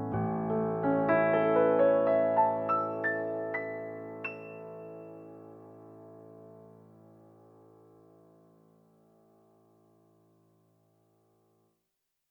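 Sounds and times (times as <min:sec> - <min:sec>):
wedding march on a Steinway piano: 0:00.0 - 0:09.7.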